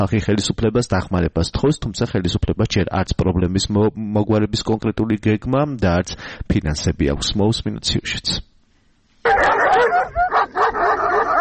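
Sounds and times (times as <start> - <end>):
speech: 0.0 - 8.5
stray dogs barking in Lagodekhi, Georgia: 9.2 - 11.3.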